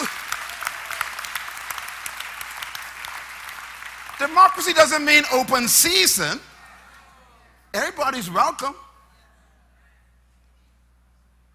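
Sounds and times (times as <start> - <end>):
audience clapping: 0.0 - 6.0
speech: 4.2 - 6.5, 7.8 - 8.8.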